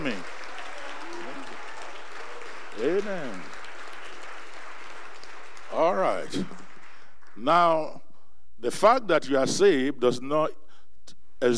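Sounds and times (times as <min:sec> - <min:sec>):
audience clapping hands: 0:00.0 - 0:07.8
speech: 0:02.9 - 0:03.5, 0:05.8 - 0:06.6, 0:07.4 - 0:08.0, 0:08.6 - 0:10.6, 0:11.4 - 0:11.5.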